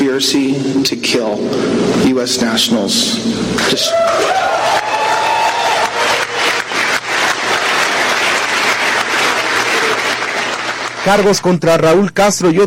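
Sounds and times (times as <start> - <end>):
speech: 0.2 - 4.8, 11.0 - 12.6
applause after an announcement: 3.6 - 11.4.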